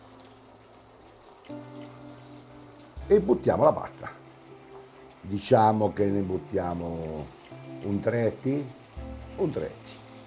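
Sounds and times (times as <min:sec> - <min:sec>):
salt pouring into a pot of water: 0:00.0 - 0:10.2
speech: 0:03.1 - 0:04.2, 0:05.3 - 0:08.8, 0:09.4 - 0:10.0.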